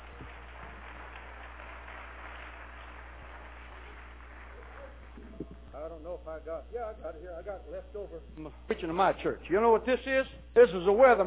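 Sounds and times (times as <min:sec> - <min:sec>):
audience clapping: 0:00.0 - 0:05.7
speech: 0:05.8 - 0:11.2.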